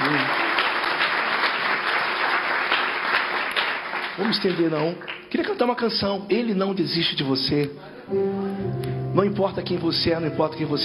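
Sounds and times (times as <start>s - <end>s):
audience applause: 0.0s - 5.3s
speech: 4.2s - 10.8s.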